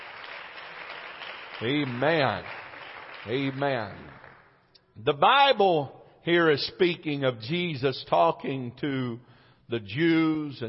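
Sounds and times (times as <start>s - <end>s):
audience hand clapping: 0.0s - 4.6s
speech: 1.6s - 2.6s, 3.2s - 4.3s, 5.0s - 10.6s.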